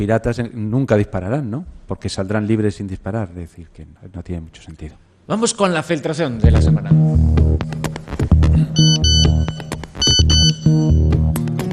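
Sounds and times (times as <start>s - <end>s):
speech: 0.0s - 7.8s, 8.6s - 9.1s
mobile phone SMS message alert tone: 8.8s - 11.2s.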